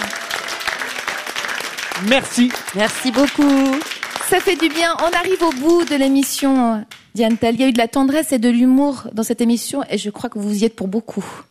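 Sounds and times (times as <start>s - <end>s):
audience applause: 0.0s - 6.3s
speech: 2.0s - 11.4s.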